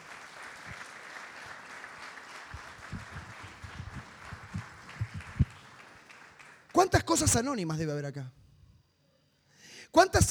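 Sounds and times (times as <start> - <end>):
audience applause: 0.0 - 6.8
speech: 6.8 - 8.4, 10.0 - 10.2.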